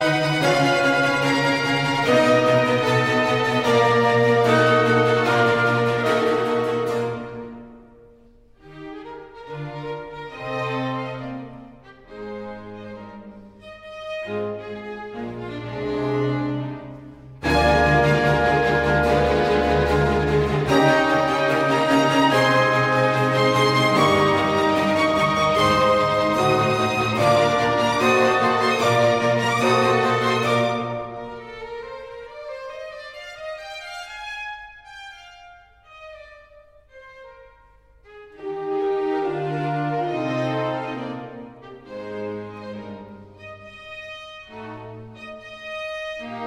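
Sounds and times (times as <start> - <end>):
symphony in C minor: 0.0 - 34.2, 34.9 - 46.4.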